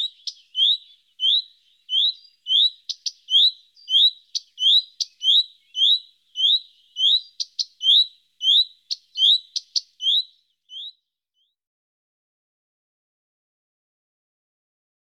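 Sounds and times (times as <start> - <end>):
common redstart songbird: 0.0 - 11.6.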